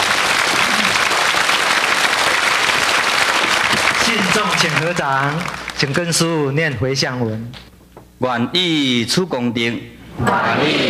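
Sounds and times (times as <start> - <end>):
warm applause from audience: 0.0 - 6.3
speech: 4.6 - 10.8.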